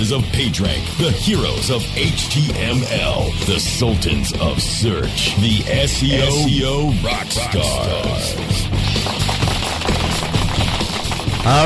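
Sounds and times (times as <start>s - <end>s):
speech: 0.1s - 9.2s, 11.4s - 11.6s
golf clap: 8.5s - 11.6s.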